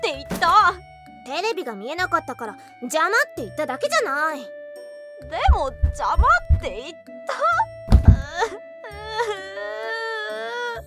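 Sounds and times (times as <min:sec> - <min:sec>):
speech: 0:00.1 - 0:04.6, 0:05.2 - 0:07.7, 0:08.4 - 0:09.5
person crying during a quarrel: 0:07.5 - 0:10.6.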